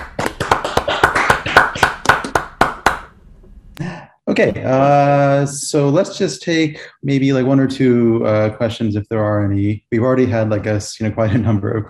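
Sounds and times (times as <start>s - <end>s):
applause over video call: 0.0s - 3.1s
speech: 4.4s - 11.8s.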